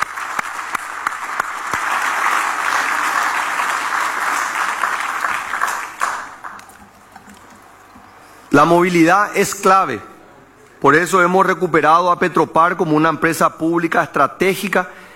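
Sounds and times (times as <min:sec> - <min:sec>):
audience applause: 0:00.0 - 0:07.5
speech: 0:08.6 - 0:10.1, 0:10.8 - 0:15.0.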